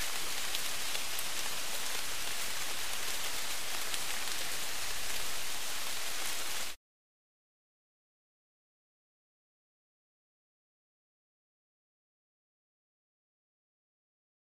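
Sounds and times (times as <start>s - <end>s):
light tropical rain: 0.0s - 6.8s.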